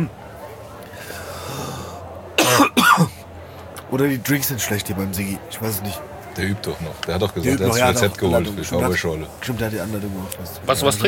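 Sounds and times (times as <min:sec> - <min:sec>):
speech: 0:00.0 - 0:00.2, 0:03.9 - 0:11.0
person coughing: 0:02.4 - 0:03.1.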